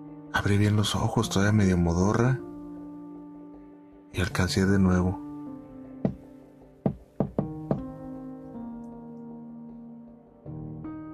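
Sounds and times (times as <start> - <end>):
speech: 0.4 - 2.5, 4.1 - 5.2
sharp knocks: 6.0 - 8.0.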